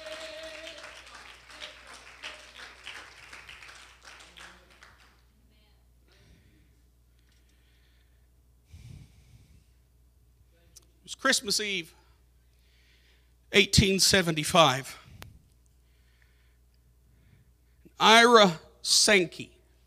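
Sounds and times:
people clapping to the Lord: 0.0 - 5.4
speech: 11.2 - 12.0, 13.6 - 15.0, 19.1 - 19.6.

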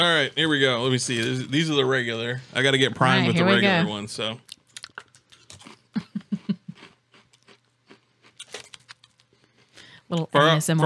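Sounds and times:
speech: 0.0 - 4.5, 10.1 - 10.8
Flamin' Hot Cheetos being chewed: 4.4 - 6.0, 6.7 - 9.8.

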